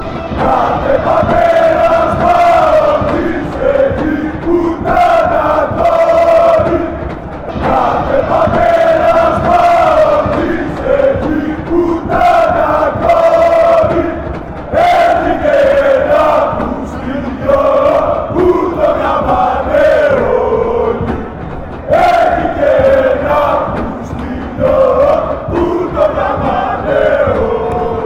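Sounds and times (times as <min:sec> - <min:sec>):
fans chanting: 0:00.0 - 0:28.0.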